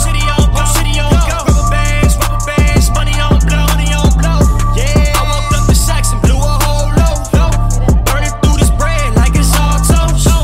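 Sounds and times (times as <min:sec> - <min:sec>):
English phone ringtone: 0:00.2 - 0:10.3.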